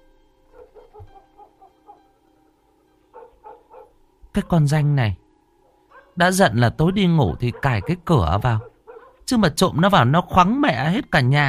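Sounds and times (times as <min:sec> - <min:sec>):
dog barking in the distance: 0:00.5 - 0:04.0, 0:05.6 - 0:06.2, 0:06.8 - 0:09.3
speech: 0:04.4 - 0:05.2, 0:06.2 - 0:08.7, 0:09.3 - 0:11.4.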